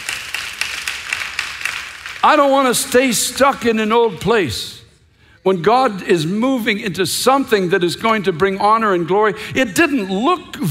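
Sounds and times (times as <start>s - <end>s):
audience clapping in rhythm: 0.0s - 3.8s
speech: 2.2s - 4.8s, 5.4s - 10.6s.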